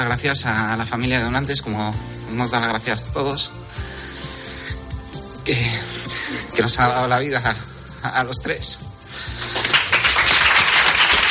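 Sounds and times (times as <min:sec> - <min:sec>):
speech: 0:00.0 - 0:03.9, 0:05.5 - 0:09.5
applause from doctors and journalists: 0:09.3 - 0:11.2.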